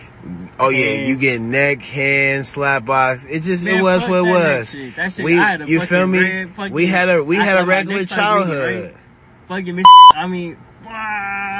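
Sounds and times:
speech: 0.2s - 11.5s
censor bleep over speech: 9.8s - 10.2s.

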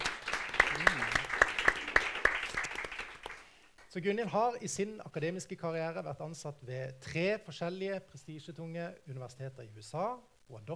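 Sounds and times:
audience applause: 0.0s - 3.4s
speech: 3.9s - 10.7s.

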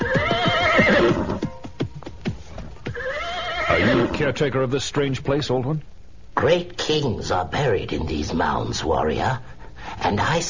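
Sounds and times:
horse neighing: 0.0s - 1.5s, 2.8s - 4.3s
speech: 4.2s - 10.4s.

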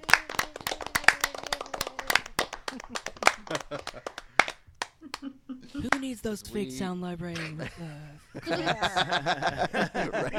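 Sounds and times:
round of applause: 0.0s - 5.0s
laughter: 0.1s - 4.4s, 5.0s - 6.1s, 7.3s - 10.3s
speech: 2.8s - 4.2s, 5.2s - 10.3s.

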